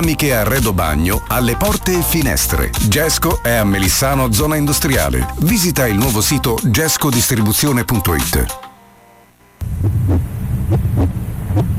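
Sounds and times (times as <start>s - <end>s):
speech: 0.0s - 8.6s
strong heartbeat: 9.6s - 11.7s.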